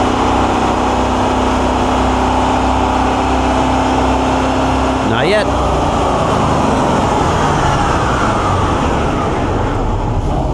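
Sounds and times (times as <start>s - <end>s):
vehicle engine revving hard on an in-ground dynamometer: 0.0s - 10.5s
speech: 5.3s - 5.8s.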